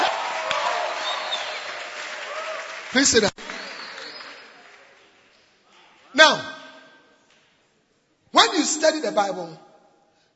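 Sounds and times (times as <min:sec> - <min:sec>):
audience clapping hands: 0:00.0 - 0:06.2
speech: 0:02.9 - 0:03.4, 0:06.3 - 0:06.5, 0:09.0 - 0:09.7.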